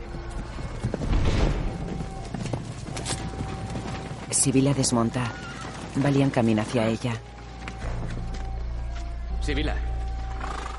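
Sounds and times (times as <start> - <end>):
hooves of several horses clip-clopping entering a courtyard at Ibelin: 0.0 - 10.7
speech: 4.4 - 7.3, 9.5 - 9.9.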